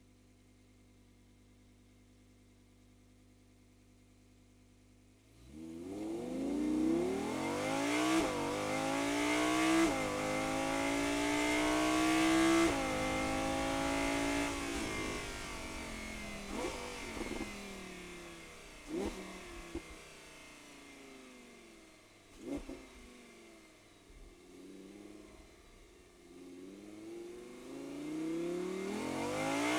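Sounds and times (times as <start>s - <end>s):
Audi R8 engine onboard starting, driving fast, stopping and reversing: 5.4s - 23.3s, 26.7s - 29.7s.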